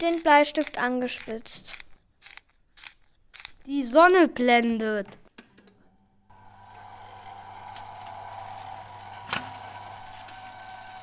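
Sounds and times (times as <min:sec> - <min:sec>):
speech: 0:00.0 - 0:01.8, 0:03.7 - 0:05.2
roller blind pulled down: 0:06.3 - 0:11.0.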